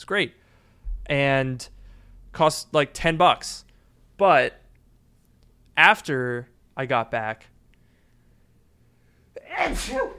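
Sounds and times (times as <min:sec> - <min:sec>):
speech: 0:00.0 - 0:00.4, 0:01.1 - 0:03.6, 0:04.2 - 0:04.6, 0:05.8 - 0:07.5, 0:09.5 - 0:10.1
single human sneeze: 0:09.5 - 0:10.1.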